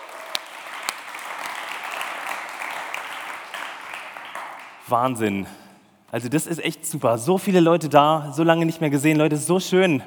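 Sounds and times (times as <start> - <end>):
audience applause: 0.0 - 4.8
speech: 4.9 - 10.0.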